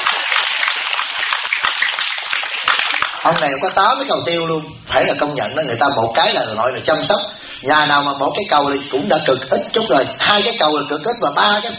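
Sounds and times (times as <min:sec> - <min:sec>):
audience applause at a monk's dharma talk: 0:00.0 - 0:03.8
speech: 0:03.2 - 0:11.7.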